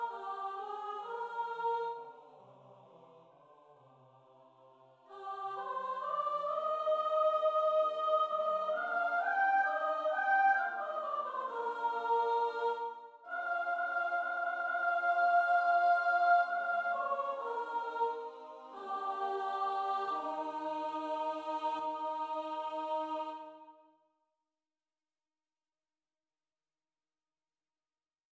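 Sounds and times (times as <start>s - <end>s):
choir singing: 0.0s - 2.6s, 5.1s - 23.9s.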